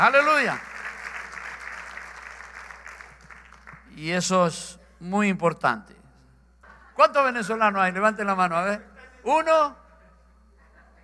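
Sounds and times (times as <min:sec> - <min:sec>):
speech: 0:00.0 - 0:00.7, 0:04.0 - 0:06.0, 0:07.0 - 0:09.8
audience applauding: 0:00.0 - 0:03.9.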